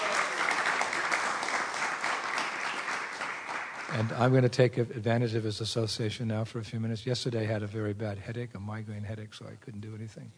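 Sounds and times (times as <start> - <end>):
audience applause: 0.0 - 4.3
speech: 3.9 - 10.3.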